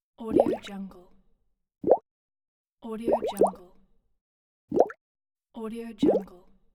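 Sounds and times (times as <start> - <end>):
water bubbles popping: 1.8 - 2.0, 3.1 - 3.6, 4.7 - 5.0.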